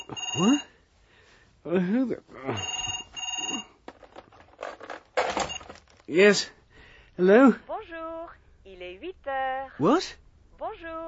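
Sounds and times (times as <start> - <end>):
telephone bell ringing at a hotel: 0.0 - 0.8, 2.5 - 3.8, 5.4 - 5.8
speech: 0.4 - 0.7, 1.6 - 3.0, 6.1 - 6.6, 7.2 - 7.8, 8.9 - 11.0.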